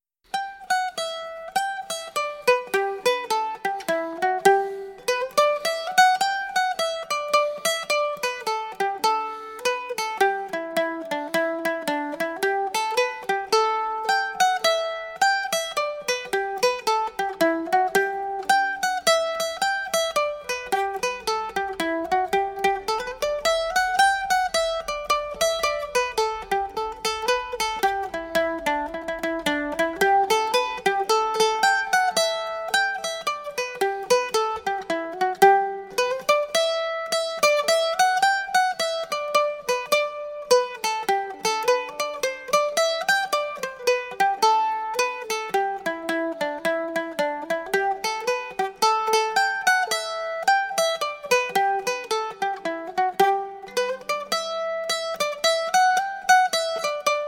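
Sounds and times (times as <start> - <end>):
banjo: 0.3 - 57.2.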